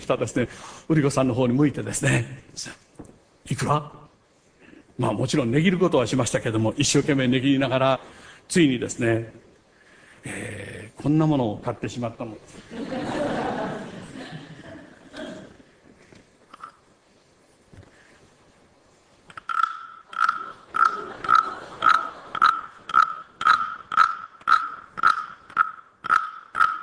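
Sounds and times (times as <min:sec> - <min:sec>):
speech: 0:00.1 - 0:04.0, 0:05.0 - 0:09.4, 0:10.2 - 0:13.1
laughter: 0:12.6 - 0:15.6, 0:20.8 - 0:22.4
frog-sounding toy: 0:19.4 - 0:26.8.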